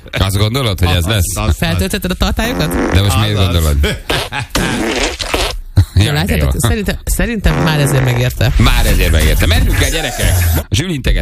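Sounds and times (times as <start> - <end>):
speech: 0.0 - 4.9, 6.0 - 11.1
loud fart after eating lentils: 2.5 - 3.3, 4.1 - 5.6, 7.5 - 8.3.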